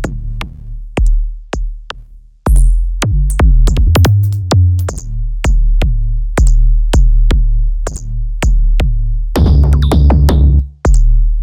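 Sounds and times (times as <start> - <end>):
kick drum: 0.0 - 11.4.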